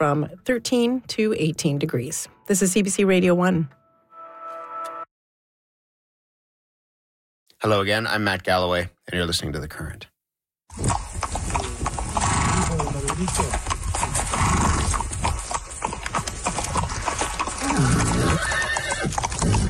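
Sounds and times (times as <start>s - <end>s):
speech: 0.0s - 3.8s, 7.6s - 10.1s, 13.2s - 13.7s
hooves clip-clopping: 10.7s - 19.6s
horse whinnying: 10.8s - 19.6s.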